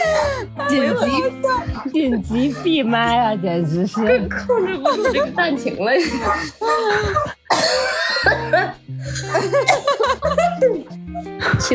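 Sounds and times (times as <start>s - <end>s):
people laughing: 0.0s - 11.7s
speech: 0.7s - 11.7s
person coughing: 7.0s - 10.1s.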